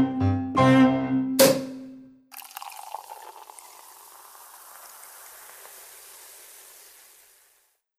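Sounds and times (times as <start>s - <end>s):
cello playing polka: 0.6s - 1.2s.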